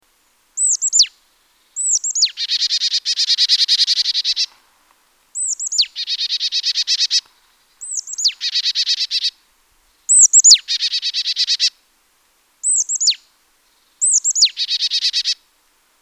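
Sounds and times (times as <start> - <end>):
marsh tit Poecile palustris calling: 0.6 - 1.1, 1.8 - 4.5, 5.4 - 9.3, 10.1 - 11.7, 12.6 - 13.2, 14.0 - 15.4.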